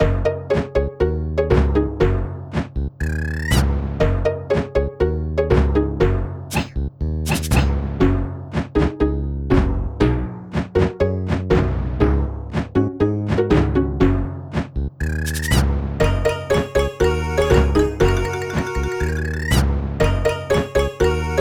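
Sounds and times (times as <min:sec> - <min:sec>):
game lobby music: 0:00.0 - 0:21.3.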